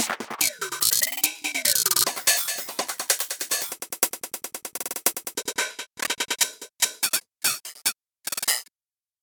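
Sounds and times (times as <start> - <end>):
sliced loops: 0.0 - 6.7.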